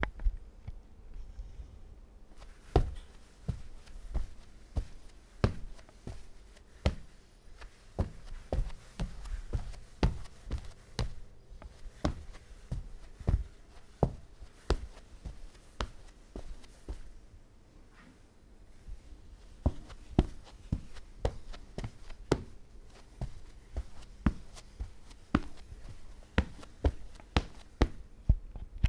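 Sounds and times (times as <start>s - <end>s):
footsteps on carpet: 2.3s - 17.2s, 18.9s - 28.4s.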